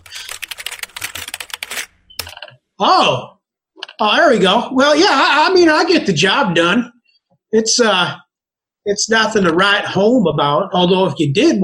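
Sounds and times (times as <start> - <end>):
rapid typing of a Google search on a computer keyboard: 0.0 - 2.5
speech: 2.8 - 3.4, 4.0 - 8.2, 8.8 - 11.6.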